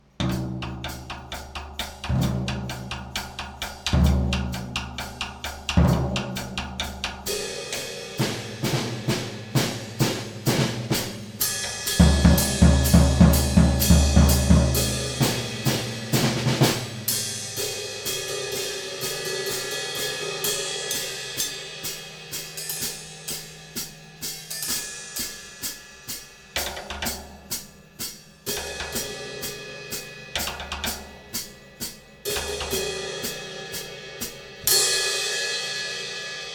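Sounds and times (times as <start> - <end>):
drums: 0.0 - 36.5.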